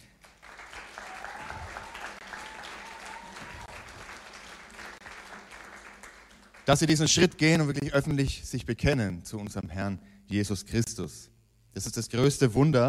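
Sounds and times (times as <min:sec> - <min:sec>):
audience applauding: 0:00.0 - 0:07.3
faint whistles and cheers: 0:00.5 - 0:05.0
speech: 0:06.7 - 0:12.8.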